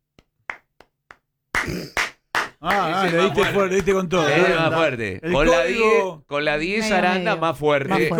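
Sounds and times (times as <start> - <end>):
speech: 1.6 - 2.0, 2.6 - 8.1
audience applause: 1.6 - 4.0.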